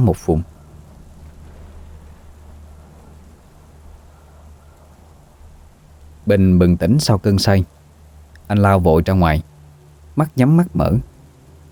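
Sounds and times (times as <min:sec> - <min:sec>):
speech: 0:00.0 - 0:00.6, 0:06.3 - 0:07.8, 0:08.5 - 0:09.5, 0:10.2 - 0:11.1
deep rolling thunder rumble: 0:00.0 - 0:08.3
steady dense rain hissing: 0:00.0 - 0:11.7.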